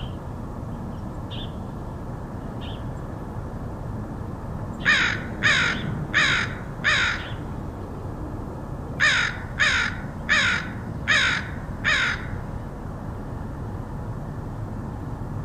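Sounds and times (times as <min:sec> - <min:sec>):
low background hum: 0:00.0 - 0:15.4
crow cawing: 0:04.8 - 0:07.4, 0:09.0 - 0:12.4.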